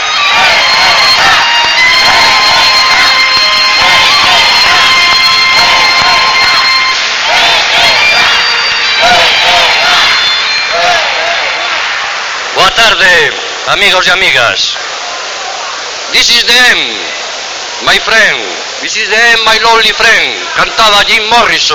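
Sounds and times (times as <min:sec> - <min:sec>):
high whistles: 0:00.0 - 0:11.1
crowd applauding: 0:00.0 - 0:13.5
crowd cheering and shouting: 0:00.0 - 0:21.7
speech: 0:12.8 - 0:14.8, 0:16.1 - 0:17.1, 0:17.8 - 0:21.7.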